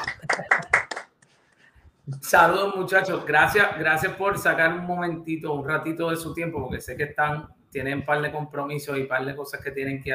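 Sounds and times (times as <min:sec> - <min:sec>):
hand clapping: 0:00.0 - 0:01.4
speech: 0:02.2 - 0:10.1.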